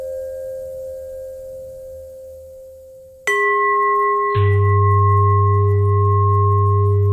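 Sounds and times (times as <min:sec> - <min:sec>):
bells ringing: 0:03.3 - 0:07.0.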